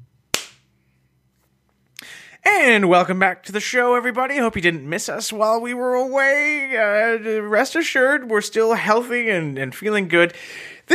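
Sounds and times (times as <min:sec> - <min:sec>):
single hand clap: 0:00.3 - 0:00.6
speech: 0:02.4 - 0:10.9.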